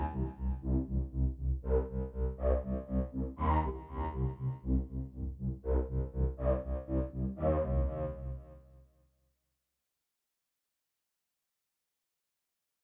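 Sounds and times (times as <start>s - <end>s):
bass: 0.0s - 8.6s.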